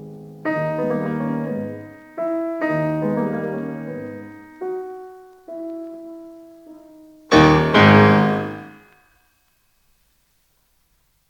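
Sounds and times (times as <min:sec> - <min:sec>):
prelude music: 0:00.0 - 0:08.9.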